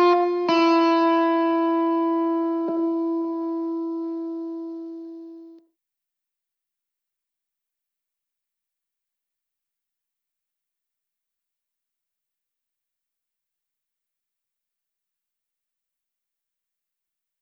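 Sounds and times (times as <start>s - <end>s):
guitar playing: 0.0s - 5.6s.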